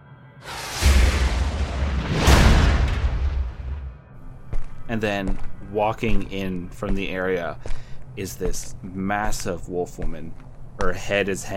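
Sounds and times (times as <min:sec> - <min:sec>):
explosion blast: 0:00.4 - 0:04.1
speech: 0:04.9 - 0:11.5.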